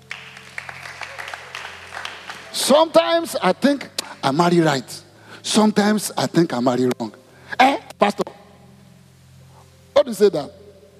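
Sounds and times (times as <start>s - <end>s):
audience clapping: 0.0s - 3.0s
speech: 2.6s - 8.2s, 10.1s - 10.6s.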